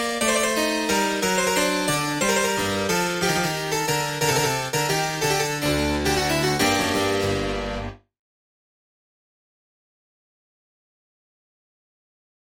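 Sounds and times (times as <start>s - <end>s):
harpsichord: 0.0s - 8.0s.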